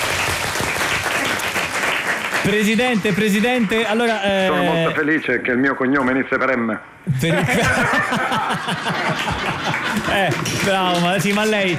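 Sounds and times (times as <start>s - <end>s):
polite applause: 0.0s - 3.8s, 8.4s - 11.7s
speech: 2.4s - 11.7s
laughter: 7.1s - 11.7s.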